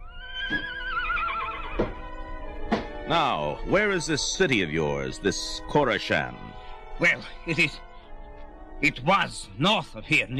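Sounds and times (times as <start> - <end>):
horse neighing: 0.0 - 2.0
speech: 3.1 - 7.9, 8.8 - 10.3.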